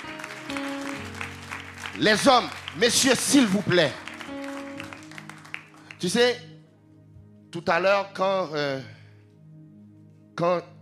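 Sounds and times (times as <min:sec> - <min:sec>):
crowd applauding and cheering: 0:00.0 - 0:06.2
speech: 0:02.0 - 0:04.0, 0:06.0 - 0:06.5, 0:07.5 - 0:09.0, 0:10.4 - 0:10.7.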